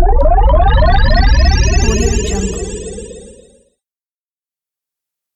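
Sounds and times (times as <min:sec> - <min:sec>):
digital glitches sweep: 0:00.1 - 0:03.4.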